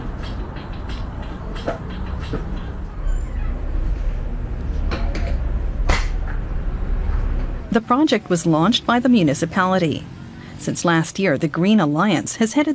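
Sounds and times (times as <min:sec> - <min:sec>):
sharp creaks and clanks at a freight cross-docking station: 0:00.0 - 0:07.6
steady low mechanical rumble at a freight cross-docking station: 0:00.0 - 0:10.6
speech: 0:07.8 - 0:12.7.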